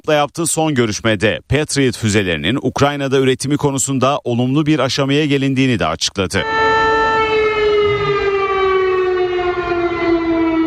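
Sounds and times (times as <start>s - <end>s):
speech: 0.0s - 6.6s
air raid missile alarm siren wailing: 6.4s - 10.6s.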